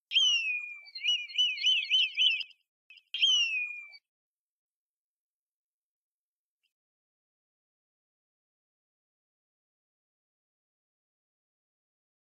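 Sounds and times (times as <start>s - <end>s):
red kite and black kite calling: 0.1s - 4.0s.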